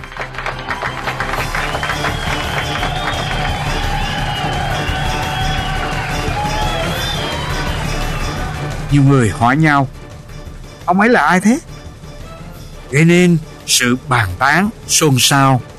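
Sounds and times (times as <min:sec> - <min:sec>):
conference crowd applauding a speech: 0:00.0 - 0:09.3
speech: 0:08.9 - 0:10.0, 0:10.9 - 0:11.7, 0:12.9 - 0:15.7.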